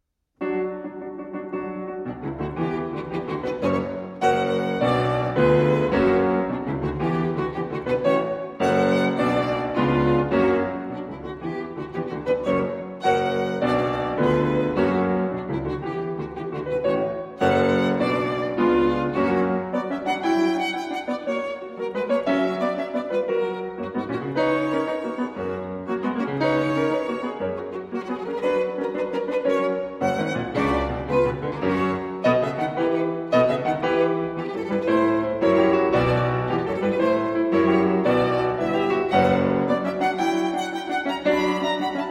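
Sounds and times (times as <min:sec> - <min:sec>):
violin sonata in D minor: 0:00.4 - 0:42.0.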